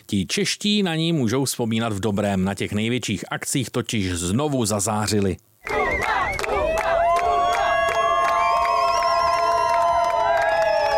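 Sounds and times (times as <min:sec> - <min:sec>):
speech: 0:00.1 - 0:06.4
teammates cheering as a crowd: 0:05.6 - 0:10.9.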